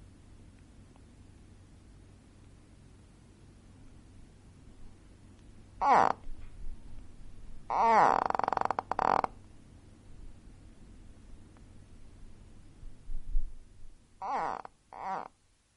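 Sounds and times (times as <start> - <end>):
quiet hiss: 0.0 - 15.7
gharial calls: 5.8 - 6.2, 7.7 - 8.2, 14.2 - 15.3.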